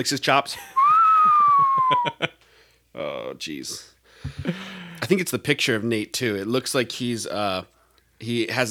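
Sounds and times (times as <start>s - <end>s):
speech: 0.0s - 2.4s, 3.0s - 8.7s
person whistling bird call: 0.8s - 2.2s.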